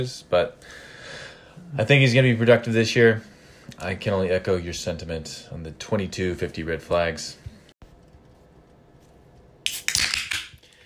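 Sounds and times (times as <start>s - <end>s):
speech: 0.0s - 0.9s, 1.6s - 7.4s
aluminum drink can cracked open: 9.6s - 10.6s.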